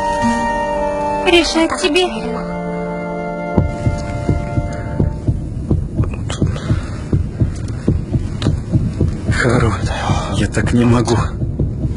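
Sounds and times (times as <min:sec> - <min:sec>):
low sustained hum: 0:00.0 - 0:09.4
speech: 0:01.3 - 0:02.5, 0:10.6 - 0:11.4
loud heartbeat: 0:03.6 - 0:11.9.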